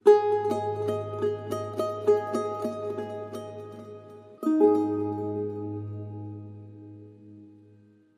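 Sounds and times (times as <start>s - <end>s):
charango: 0.0s - 8.1s.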